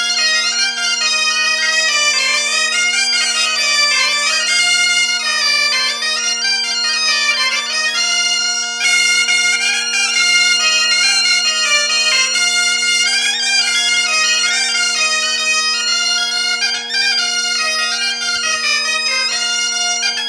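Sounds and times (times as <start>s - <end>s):
biniou playing at a festival: 0.0s - 19.3s.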